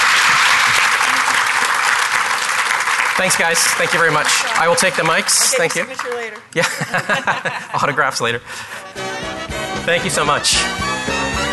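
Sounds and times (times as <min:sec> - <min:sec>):
audience applause: 0:00.0 - 0:07.2
laughter: 0:00.3 - 0:01.7, 0:06.5 - 0:08.8
speech: 0:03.2 - 0:09.1, 0:09.8 - 0:11.5.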